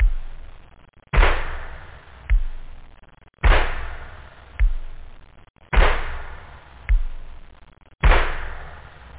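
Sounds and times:
pop beat loop: 0.0s - 5.2s, 6.9s - 7.5s.

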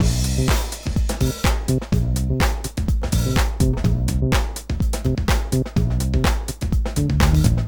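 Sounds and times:
house breakbeat: 0.0s - 7.6s.

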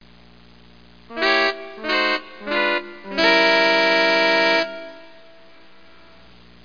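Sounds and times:
synth: 1.1s - 5.4s.

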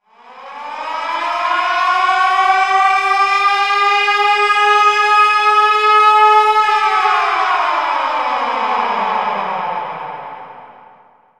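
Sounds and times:
siren: 0.0s - 11.3s.

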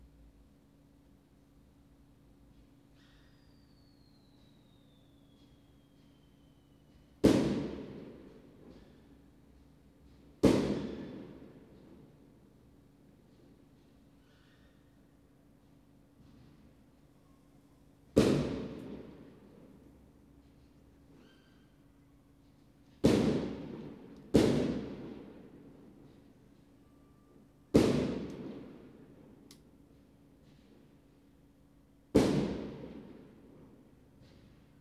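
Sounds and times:
fireworks: 4.0s - 9.2s, 10.0s - 12.2s, 18.2s - 19.8s, 23.0s - 26.2s, 27.7s - 29.4s, 32.1s - 34.7s.

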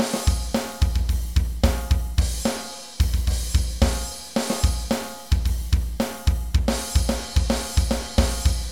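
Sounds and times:
drum: 0.0s - 8.7s.

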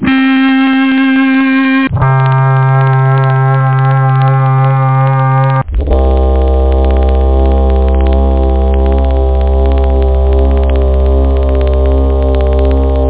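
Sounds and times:
guitar note E with vibrato: 0.0s - 13.0s.

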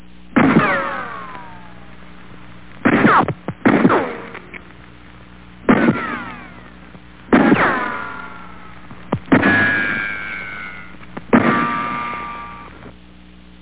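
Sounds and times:
rifle: 0.3s - 2.1s, 2.8s - 4.8s, 5.6s - 12.7s.

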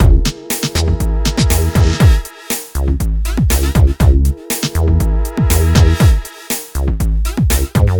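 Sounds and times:
groovebox beat: 0.0s - 7.9s.

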